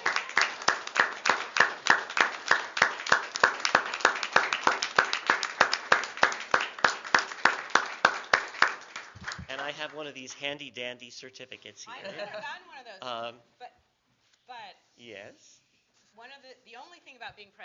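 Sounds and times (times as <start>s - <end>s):
audience applause: 0.0s - 10.1s
speech: 9.8s - 13.5s, 15.0s - 15.5s, 16.2s - 17.6s.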